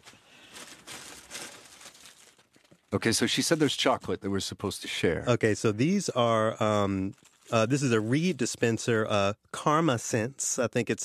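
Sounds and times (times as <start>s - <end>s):
gift wrapping paper rattling: 0.0s - 3.6s, 7.1s - 7.6s
speech: 2.9s - 11.0s.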